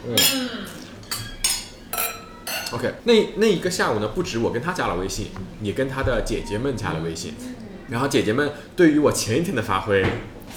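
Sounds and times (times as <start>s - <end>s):
speech: 0.0s - 0.8s, 2.7s - 10.5s
glasses clinking in a toast: 0.2s - 2.9s.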